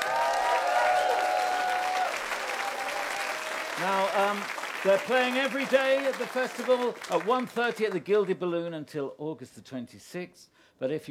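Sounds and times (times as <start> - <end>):
audience applause: 0.0 - 8.0
speech: 3.8 - 11.0.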